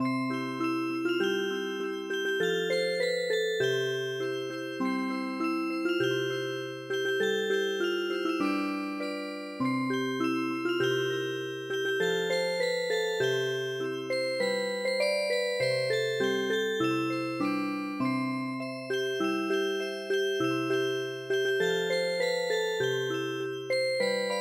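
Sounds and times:
traditional music box: 0.0 - 24.3.

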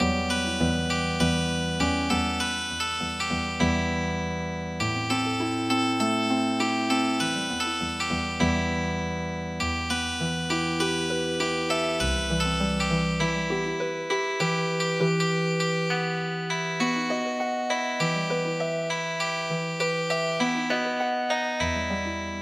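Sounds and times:
MIDI healing harp music: 0.0 - 22.4.

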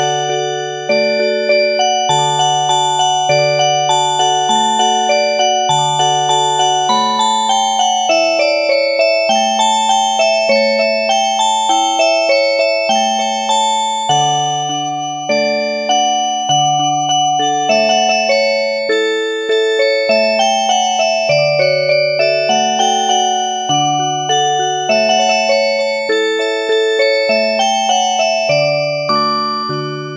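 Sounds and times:
music box playing an oberek: 0.0 - 30.1.

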